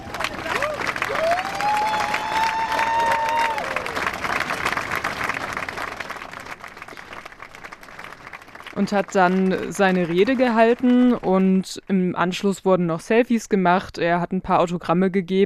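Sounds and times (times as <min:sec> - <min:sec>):
crowd cheering and applauding: 0:00.0 - 0:11.6
speech: 0:08.8 - 0:15.4.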